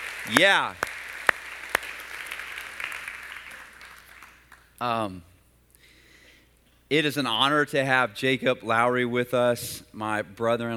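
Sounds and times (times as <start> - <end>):
audience applause: 0.0 - 4.6
speech: 0.2 - 0.9, 4.8 - 5.3, 6.9 - 10.7.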